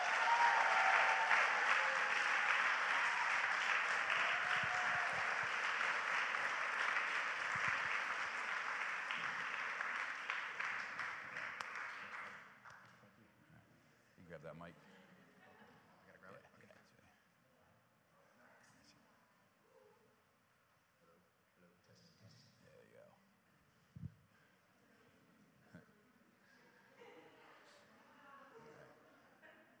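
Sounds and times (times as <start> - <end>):
audience applause: 0.0 - 12.4.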